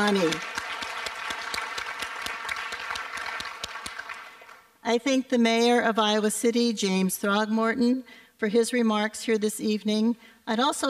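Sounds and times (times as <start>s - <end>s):
speech: 0.0s - 0.5s, 4.9s - 10.8s
audience applause: 0.0s - 4.7s.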